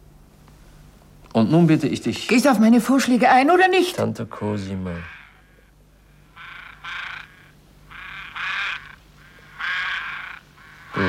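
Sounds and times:
speech: 0:01.4 - 0:05.2
ravens croaking: 0:04.4 - 0:11.0.

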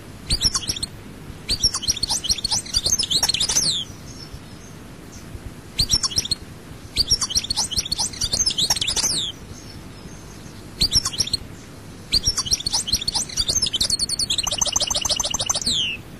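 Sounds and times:
European goldfinch twittering song: 0:00.3 - 0:05.2, 0:05.8 - 0:16.0.

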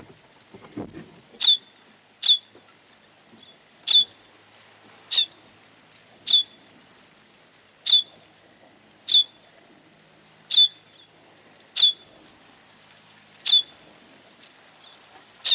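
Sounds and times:
bird giving sharp very high downslurred chirps: 0:01.4 - 0:02.5, 0:03.4 - 0:04.2, 0:07.9 - 0:08.2, 0:09.1 - 0:09.4, 0:10.5 - 0:11.1, 0:11.8 - 0:12.0, 0:13.5 - 0:13.8.

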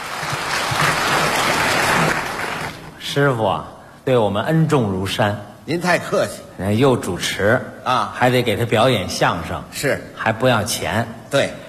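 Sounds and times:
audience applause: 0:00.0 - 0:03.0
speech: 0:03.1 - 0:11.6.

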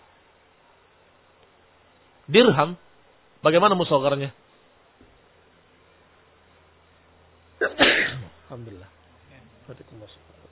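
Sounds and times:
speech: 0:02.3 - 0:04.4, 0:08.5 - 0:09.0, 0:09.7 - 0:10.3
sneeze: 0:07.6 - 0:08.4.

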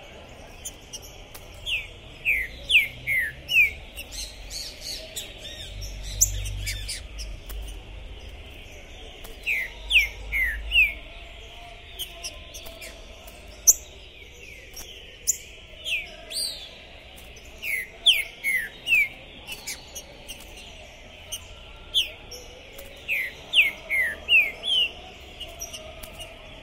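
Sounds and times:
green-winged saltator whistled song: 0:00.4 - 0:11.0, 0:12.0 - 0:26.6.

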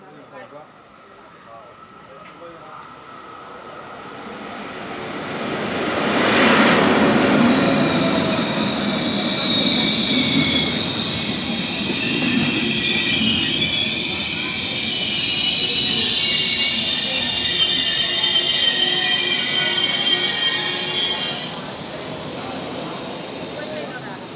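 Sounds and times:
low rumble of rail noise from train pulling in: 0:05.2 - 0:24.3
Trenitalia regional train wheels squealing at Levanto station platform: 0:06.2 - 0:24.3.

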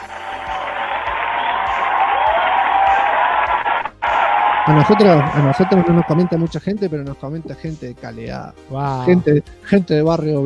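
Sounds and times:
canned applause sound effect: 0:00.0 - 0:06.5
speech: 0:04.7 - 0:10.4.

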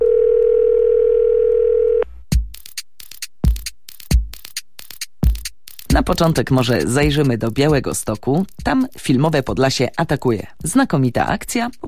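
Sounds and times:
telephone dial tone: 0:00.0 - 0:02.0
speech: 0:06.0 - 0:11.8.

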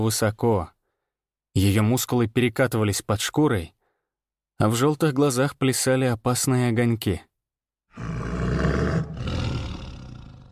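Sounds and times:
speech: 0:00.0 - 0:00.8, 0:01.6 - 0:03.8, 0:04.6 - 0:07.3
low warning growl of predator: 0:08.0 - 0:10.5.

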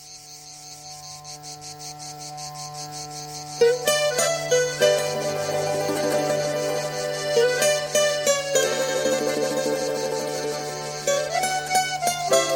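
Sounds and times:
cicadas chirping in the Mediterranean south of France: 0:00.0 - 0:12.5
melodic instrumental tune with a sustained low drone: 0:02.3 - 0:12.5.

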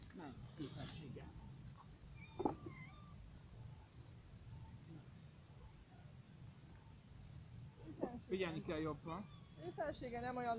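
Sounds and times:
speech: 0:00.2 - 0:01.5, 0:02.4 - 0:02.8, 0:08.3 - 0:10.5
cat meowing outdoors: 0:02.1 - 0:03.3.

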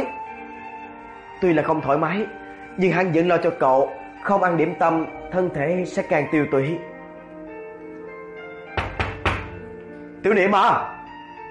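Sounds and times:
speech: 0:01.4 - 0:06.9, 0:10.2 - 0:11.0
knocking on a door: 0:08.8 - 0:09.7.

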